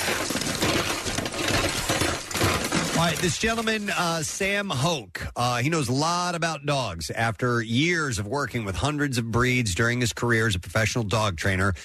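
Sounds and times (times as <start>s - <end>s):
metal and glassy objects rattling in a cluttered junk drawer: 0.0s - 4.4s
speech: 3.0s - 11.8s.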